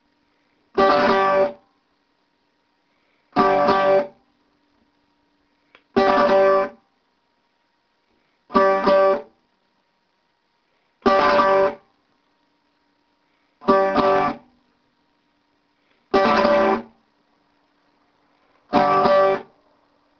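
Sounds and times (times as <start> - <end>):
strings strummed: 0.8 - 1.6, 3.4 - 4.1, 6.0 - 6.8, 8.5 - 9.3, 11.1 - 11.8, 13.6 - 14.5, 16.1 - 17.0, 18.7 - 19.5.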